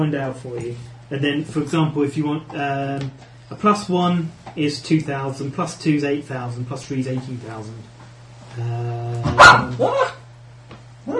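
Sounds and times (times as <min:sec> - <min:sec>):
speech: 0:00.0 - 0:08.0, 0:08.6 - 0:10.2
dog barking: 0:09.4 - 0:10.2.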